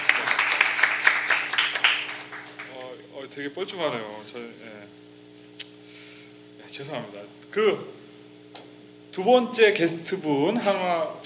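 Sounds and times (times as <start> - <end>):
audience applause: 0.0 - 2.9
speech: 3.4 - 5.0, 6.8 - 8.0, 9.2 - 11.2.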